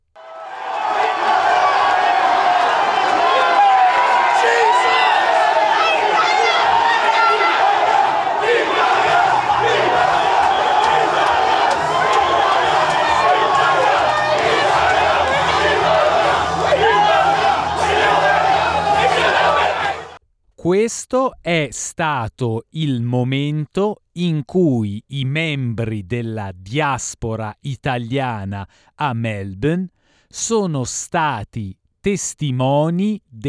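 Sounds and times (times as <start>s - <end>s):
large crowd celebrating noisily in the street: 0.2s - 20.2s
speech: 20.7s - 33.4s.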